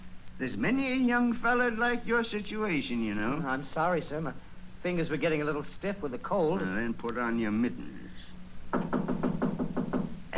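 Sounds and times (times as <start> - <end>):
speech: 0.4 - 9.0
knock at the door: 8.7 - 10.2.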